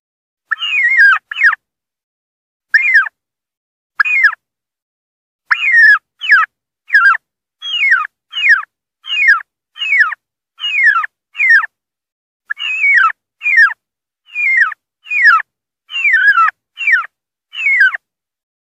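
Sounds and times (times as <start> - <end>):
wild turkey distress calling: 0.5 - 1.6, 2.8 - 3.2, 4.0 - 4.4, 5.5 - 11.7, 12.5 - 18.0.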